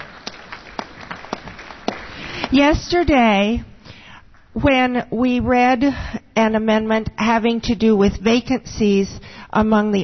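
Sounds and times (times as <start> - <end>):
scattered audience applause at an organization's meeting: 0.0 - 2.7
speech: 2.5 - 3.7, 4.6 - 10.0.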